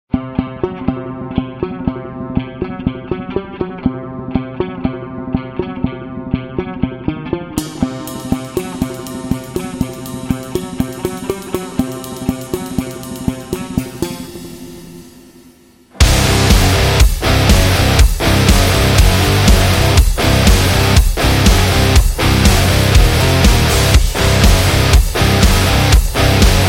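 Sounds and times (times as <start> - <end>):
aggressive rock music: 0.4 - 26.6.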